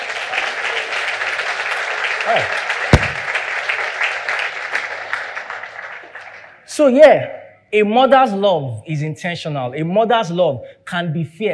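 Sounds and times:
audience clapping: 0:00.0 - 0:06.7
speech: 0:02.3 - 0:02.6, 0:06.8 - 0:11.5
sharp crack: 0:02.9 - 0:03.4.

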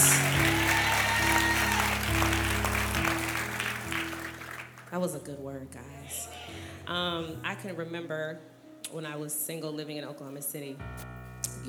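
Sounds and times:
sustained organ or keyboard chords: 0:00.0 - 0:04.8
audience clapping: 0:00.0 - 0:05.0
speech: 0:05.0 - 0:06.3, 0:06.9 - 0:11.6.

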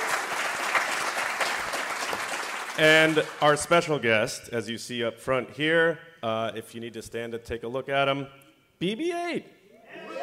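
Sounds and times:
audience applause: 0:00.0 - 0:03.5
speech: 0:02.8 - 0:09.6.

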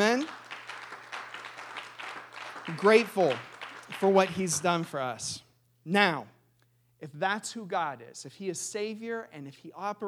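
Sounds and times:
audience hand clapping: 0:00.0 - 0:05.2
speech: 0:02.7 - 0:06.4, 0:07.0 - 0:10.0.

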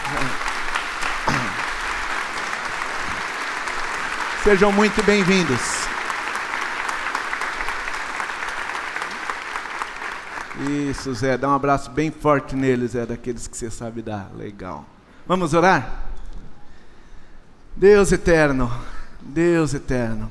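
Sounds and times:
church congregation applauding: 0:00.0 - 0:11.2
speech: 0:04.4 - 0:05.8, 0:10.6 - 0:16.0, 0:17.8 - 0:20.2.

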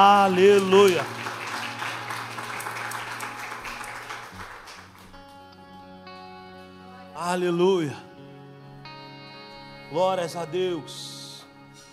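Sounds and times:
speech: 0:00.0 - 0:01.2, 0:07.3 - 0:08.1, 0:09.9 - 0:11.1
audience applause: 0:00.0 - 0:05.5.

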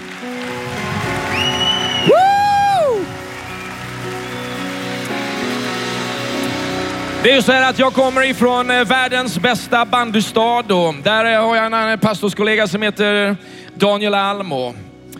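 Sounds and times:
audience applause: 0:00.0 - 0:07.2
speech: 0:02.0 - 0:02.2, 0:07.2 - 0:14.9.

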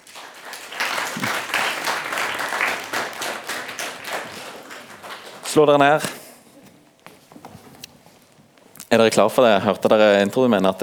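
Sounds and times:
audience applause: 0:00.0 - 0:06.2
speech: 0:05.5 - 0:06.2, 0:09.0 - 0:10.8.

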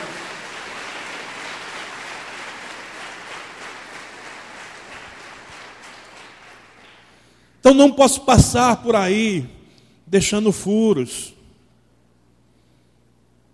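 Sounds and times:
audience applause: 0:00.0 - 0:07.3
speech: 0:07.6 - 0:11.4.

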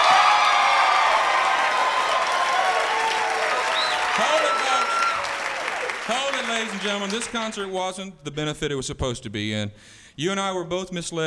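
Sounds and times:
crowd roaring and applauding: 0:00.0 - 0:07.8
speech: 0:06.5 - 0:11.2.

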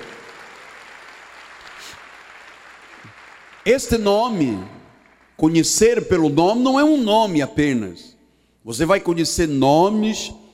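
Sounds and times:
church audience applauding: 0:00.0 - 0:05.4
speech: 0:03.0 - 0:04.8, 0:05.4 - 0:10.4.

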